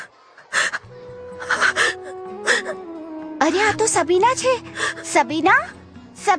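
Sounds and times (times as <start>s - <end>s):
person crying in a school principal's room: 0.6s - 2.9s
speech: 3.5s - 6.3s.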